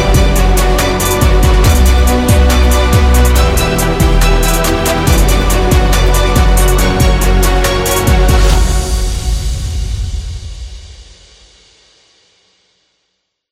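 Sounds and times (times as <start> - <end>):
epic hip hop beat: 0.0 - 9.4.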